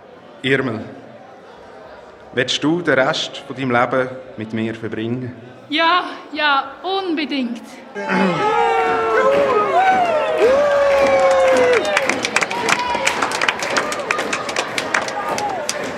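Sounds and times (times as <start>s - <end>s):
speech: 0.4s - 1.0s, 2.3s - 9.5s
crowd cheering and clapping: 8.0s - 15.9s.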